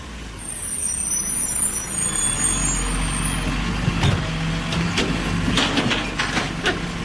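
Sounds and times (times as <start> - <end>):
garbage truck engine rumbling: 0.0 - 7.0
air brakes hissing: 0.4 - 3.4
metallic clanks and bangs: 3.8 - 7.0.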